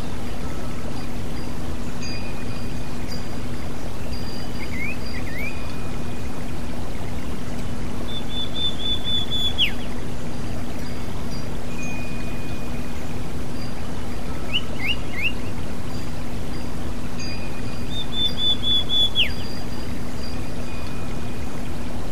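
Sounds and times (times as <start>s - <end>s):
water trickling: 0.0s - 22.1s
kacer magpie robin singing: 4.4s - 5.9s, 8.1s - 10.0s, 14.5s - 15.5s, 17.8s - 19.7s.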